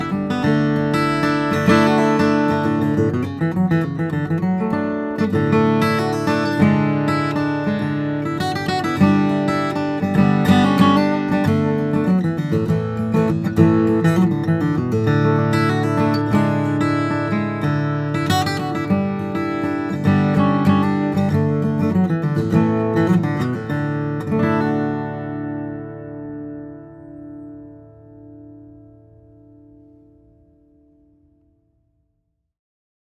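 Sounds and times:
D-28 steel string flattop guitar of Brazilian rosewood and Adirondack spruce: 0.0 - 31.4.

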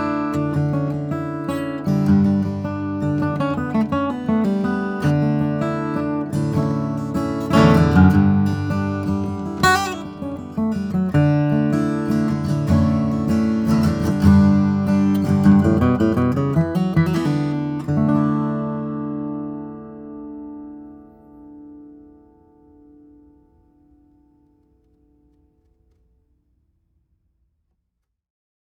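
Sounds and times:
1992 slope shoulder dreadnought steel string flattop guitar of koa and spruce: 0.0 - 26.0.

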